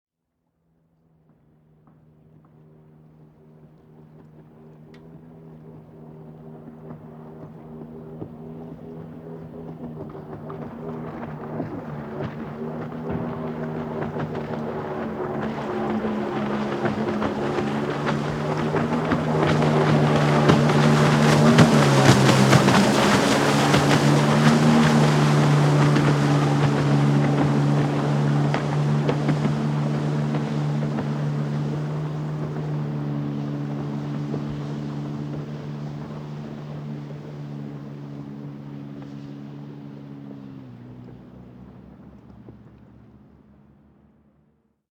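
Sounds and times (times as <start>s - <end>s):
distant jet ski passing by: 0.6s - 44.7s.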